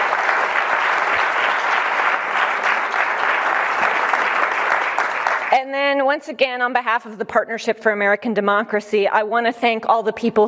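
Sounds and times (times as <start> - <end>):
audience applause: 0.0 - 5.6
speech: 5.6 - 10.4.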